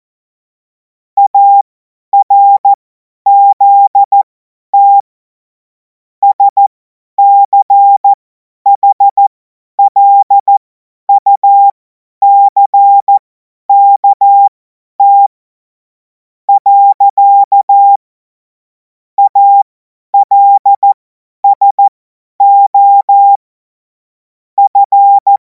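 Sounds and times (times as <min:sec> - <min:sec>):
morse code CW: 0:01.2 - 0:05.0, 0:06.2 - 0:08.1, 0:08.7 - 0:15.3, 0:16.5 - 0:18.0, 0:19.2 - 0:23.4, 0:24.6 - 0:25.4.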